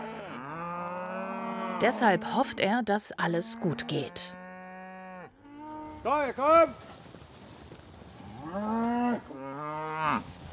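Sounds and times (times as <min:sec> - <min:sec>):
cows mooing: 0:00.0 - 0:02.5, 0:03.3 - 0:06.0, 0:08.2 - 0:10.2
speech: 0:01.8 - 0:04.4, 0:06.0 - 0:07.0, 0:08.4 - 0:09.3.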